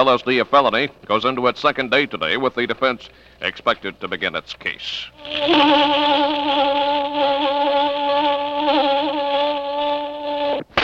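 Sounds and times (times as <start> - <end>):
speech: 0.0 - 8.9
flies buzzing: 5.2 - 10.8.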